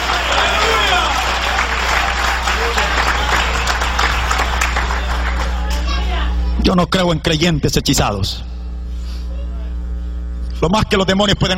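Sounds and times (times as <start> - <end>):
audience applauding: 0.0 - 6.0
constant low hum: 0.0 - 11.5
speech: 6.7 - 8.6, 10.6 - 11.5.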